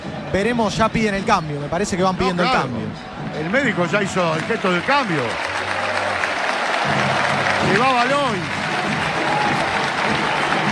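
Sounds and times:
speech: 0.3 - 5.5, 6.9 - 8.6
stadium crowd ovation for a departing player: 3.2 - 10.6.

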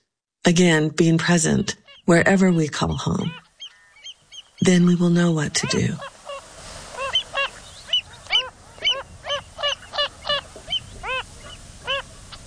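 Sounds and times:
speech: 0.5 - 3.4, 4.7 - 6.1
Wilson's phalarope calling: 1.3 - 12.4
faint hiss: 3.4 - 12.4.

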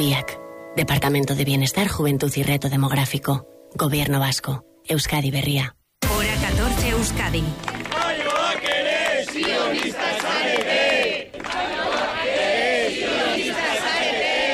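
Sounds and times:
speech: 0.0 - 7.7
large crowd shouting chants at a rally: 7.6 - 14.5.

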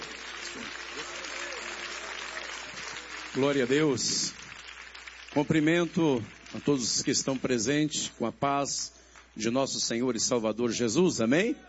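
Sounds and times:
audience applause: 0.0 - 7.7
speech: 3.4 - 4.4, 5.3 - 11.6.

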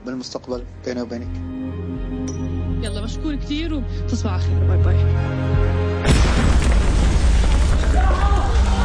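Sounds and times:
speech: 0.1 - 1.6, 2.3 - 6.6
bomb explosions from a war documentary trailer: 6.0 - 8.7.

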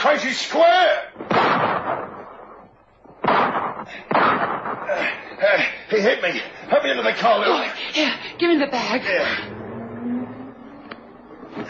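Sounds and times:
speech: 0.0 - 1.5, 6.0 - 9.5
pistol shots: 1.2 - 2.6, 3.2 - 4.9.

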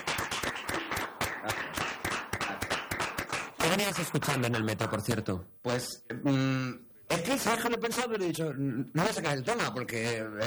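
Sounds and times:
applause: 0.0 - 4.2
speech: 3.7 - 10.4.

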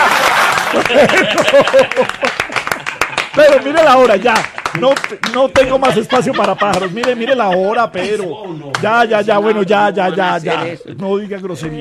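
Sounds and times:
laughter: 0.0 - 3.4, 5.5 - 10.9
audience applause: 0.0 - 7.2
speech: 0.8 - 2.6, 3.4 - 11.7.

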